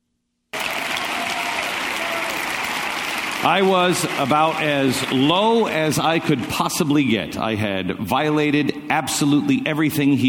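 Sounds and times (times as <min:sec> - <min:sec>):
audience applause: 0:00.5 - 0:07.1
speech: 0:03.4 - 0:10.2.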